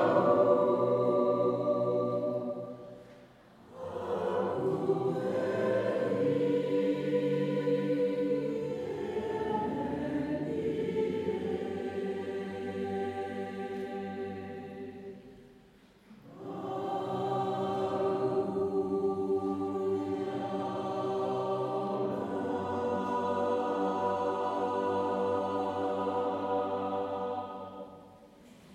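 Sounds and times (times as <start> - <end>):
choir singing a chorale: 0.0 - 28.7.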